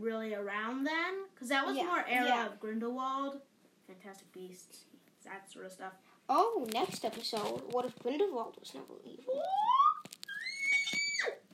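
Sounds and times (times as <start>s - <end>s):
speech: 0.0s - 10.0s
weird scream: 9.3s - 11.5s.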